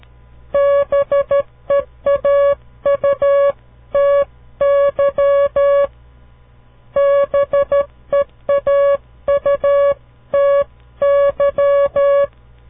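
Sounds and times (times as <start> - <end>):
Morse code beeps spelling a word: 0.6 - 5.9, 7.0 - 12.3.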